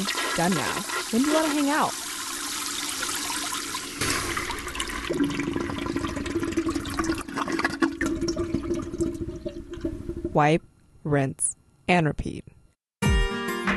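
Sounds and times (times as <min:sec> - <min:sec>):
speech: 0:00.0 - 0:02.0, 0:10.4 - 0:12.5
toilet flushing: 0:00.0 - 0:10.4.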